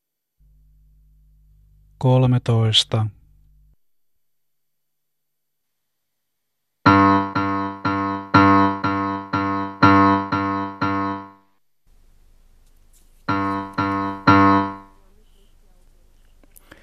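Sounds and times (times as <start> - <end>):
speech: 2.0 - 3.2
piano-like tones of a musical aptitude test sequence: 6.9 - 11.3, 13.3 - 15.0.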